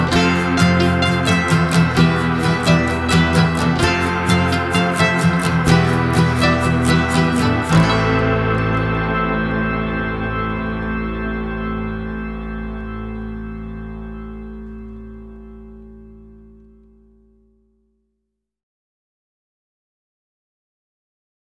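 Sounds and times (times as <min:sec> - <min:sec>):
mandolin strumming: 0:00.0 - 0:16.8.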